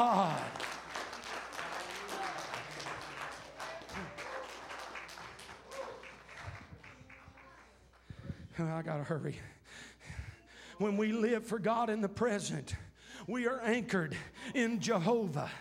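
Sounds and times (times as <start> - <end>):
audience clapping hands: 0.0 - 8.1
speech: 8.6 - 9.6, 10.8 - 15.5.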